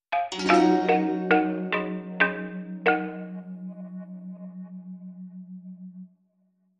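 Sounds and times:
balafon playing: 0.2s - 3.7s.

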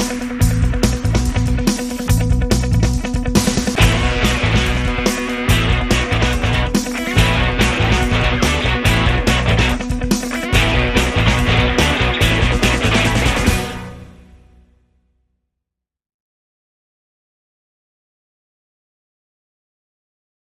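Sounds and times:
indie rock action music: 0.0s - 14.6s.

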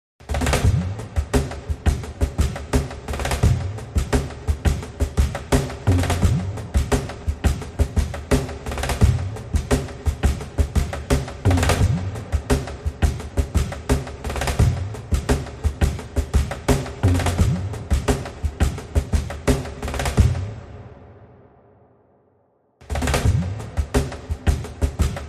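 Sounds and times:
drums: 0.2s - 21.5s, 22.8s - 25.2s.

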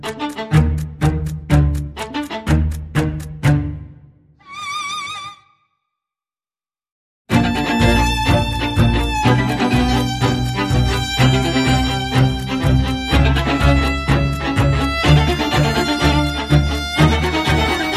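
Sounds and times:
percussion: 0.0s - 3.9s, 7.3s - 17.9s
strings: 0.0s - 5.5s, 7.3s - 17.9s.

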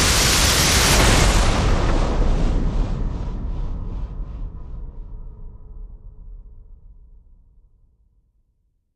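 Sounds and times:
smashing crash: 0.0s - 2.4s
drone: 0.0s - 7.3s.

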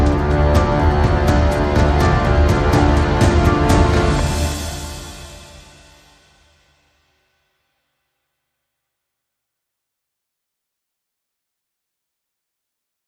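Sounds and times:
music bed: 0.0s - 7.1s.

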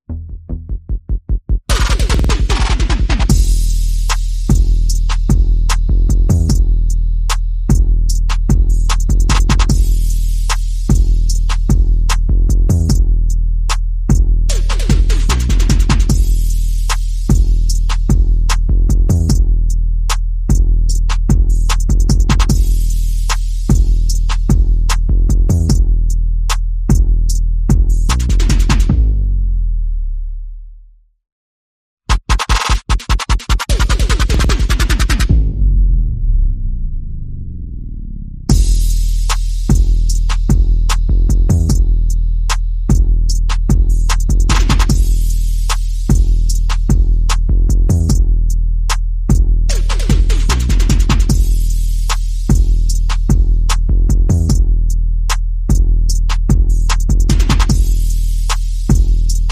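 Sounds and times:
bass: 0.0s - 31.2s, 32.1s - 59.5s
percussion: 0.5s - 29.2s, 32.1s - 35.6s, 38.5s - 59.5s.

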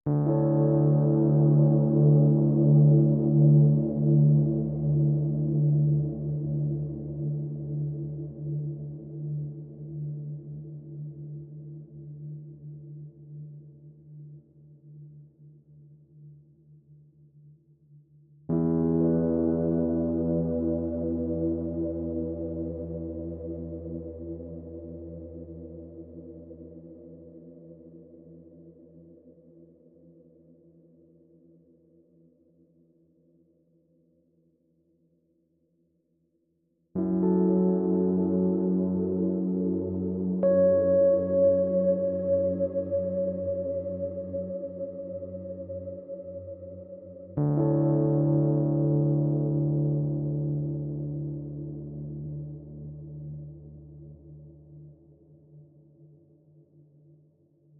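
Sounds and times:
Rhodes electric piano: 0.1s - 10.6s, 18.5s - 26.6s, 37.0s - 54.1s.

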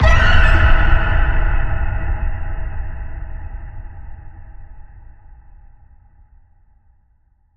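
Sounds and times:
phoenix squawk: 0.0s - 1.0s
boom: 0.0s - 6.6s.

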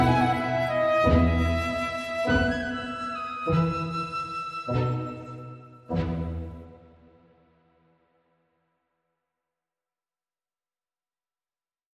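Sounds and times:
orchestral music: 0.0s - 7.3s.

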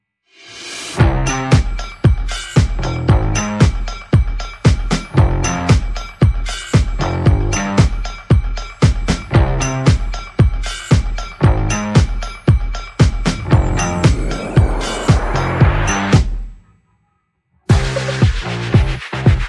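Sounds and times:
percussion: 0.3s - 16.7s, 17.7s - 19.4s
bass: 1.0s - 1.7s, 2.8s - 3.9s, 4.9s - 6.0s, 6.9s - 10.2s, 11.4s - 16.4s, 17.7s - 19.4s.

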